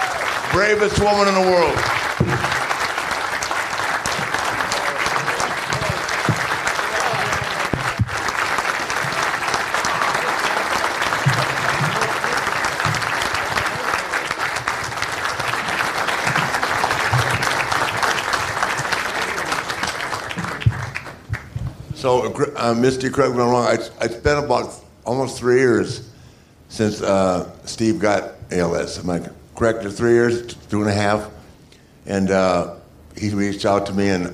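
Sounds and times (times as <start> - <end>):
audience clapping: 0.0 - 22.2
speech: 0.6 - 2.5, 22.0 - 26.1, 26.7 - 31.4, 32.0 - 34.3.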